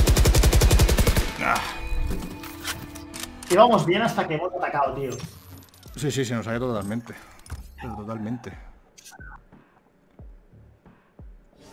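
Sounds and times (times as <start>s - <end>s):
video game automatic gunfire through a wall: 0.0s - 1.4s
speech: 3.5s - 5.4s, 6.0s - 9.3s.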